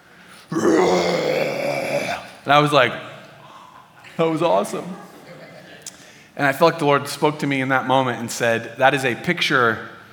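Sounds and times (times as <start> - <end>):
person imitating a lion's roar: 0.5 - 2.4
speech: 2.5 - 3.1, 4.2 - 5.1, 6.4 - 10.0.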